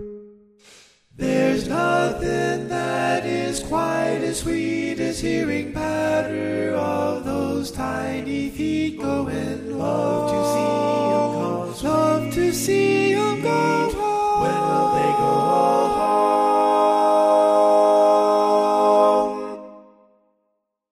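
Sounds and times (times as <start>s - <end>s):
tenor singing: 1.2s - 19.8s.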